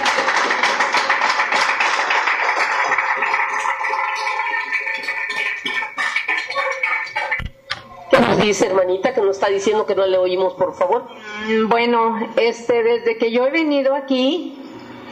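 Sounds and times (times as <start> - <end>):
audience applauding: 0.0 - 7.5
speech: 8.4 - 14.6.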